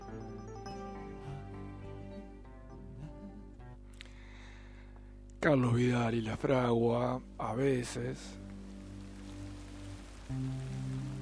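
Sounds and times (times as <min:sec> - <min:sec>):
speech: 0:05.4 - 0:08.4
rain falling in a song: 0:06.5 - 0:11.2.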